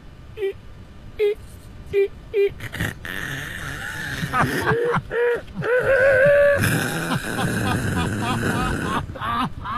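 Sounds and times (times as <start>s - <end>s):
person imitating a car reverse parking: 1.2s - 9.7s.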